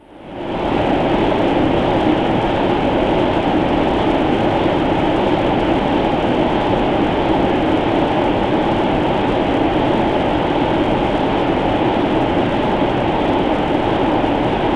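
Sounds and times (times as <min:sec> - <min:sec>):
wind: 0:00.0 - 0:14.7.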